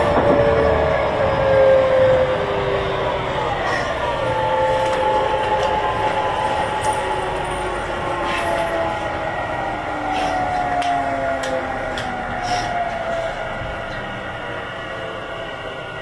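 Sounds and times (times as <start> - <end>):
Tobu 50000 series train running between Asakadai and Shiki: 0.0 - 15.9.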